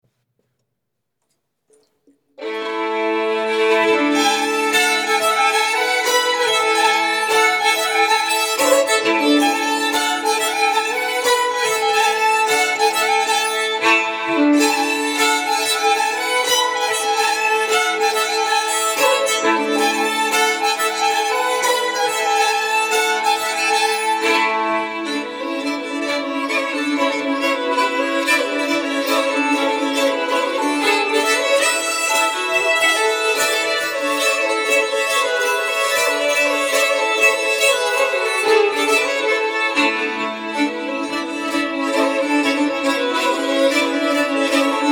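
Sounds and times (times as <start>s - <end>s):
Swedish bagpipe playing a polska: 2.4s - 44.9s.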